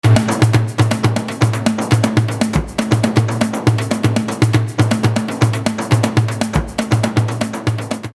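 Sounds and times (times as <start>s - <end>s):
drum loop: 0.0s - 8.1s.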